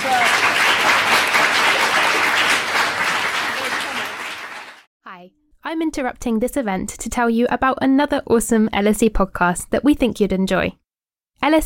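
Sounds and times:
audience applause: 0:00.0 - 0:04.9
speech: 0:05.7 - 0:10.8, 0:11.4 - 0:11.6.

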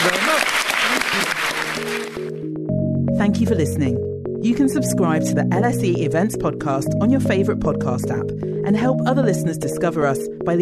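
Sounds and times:
audience applauding: 0:00.0 - 0:02.4
speech: 0:03.2 - 0:10.6.

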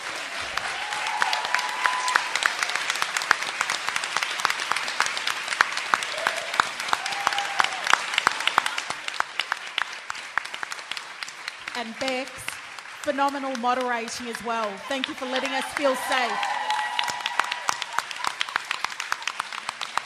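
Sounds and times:
audience applause: 0:00.0 - 0:20.0
faint cheers: 0:00.4 - 0:03.0, 0:06.1 - 0:09.0, 0:14.7 - 0:18.4
speech: 0:11.8 - 0:16.5.

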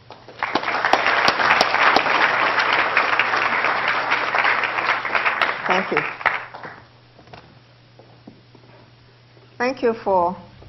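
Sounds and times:
audience applause at LSE welcoming a lecturer: 0:00.0 - 0:06.9
speech: 0:05.7 - 0:06.2, 0:09.6 - 0:10.5.

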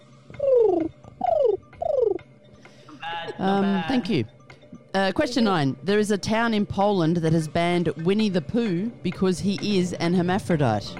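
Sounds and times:
person imitating pigeon cooing: 0:00.3 - 0:02.2
speech: 0:03.4 - 0:04.4, 0:05.0 - 0:10.9.

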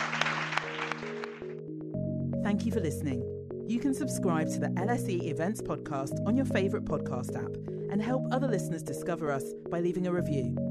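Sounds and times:
audience round of applause: 0:00.0 - 0:01.6
speech: 0:02.5 - 0:10.6.

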